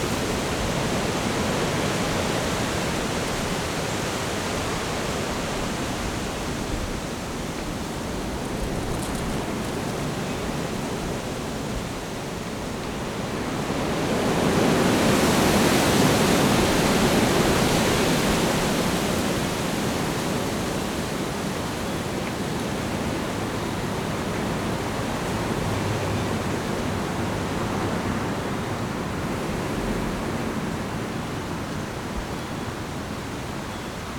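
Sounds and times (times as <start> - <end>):
strong wind in trees in a park: 0.0 - 34.1.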